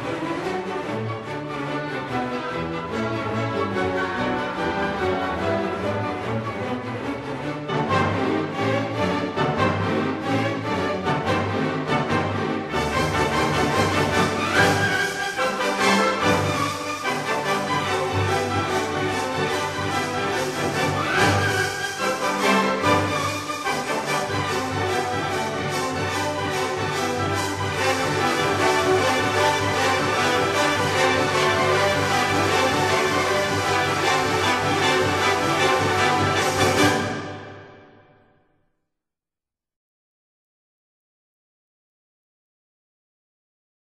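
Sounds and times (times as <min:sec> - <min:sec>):
trumpet: 0:00.0 - 0:38.2.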